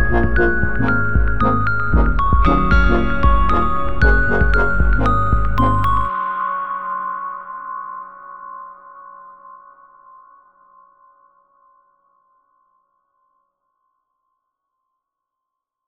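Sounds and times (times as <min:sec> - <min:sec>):
instrumental jingle: 0:00.0 - 0:06.4.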